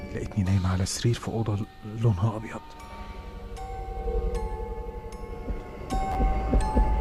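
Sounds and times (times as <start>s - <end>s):
speech: 0.1s - 2.9s
heartbeat sound effect in a hospital: 5.4s - 6.9s.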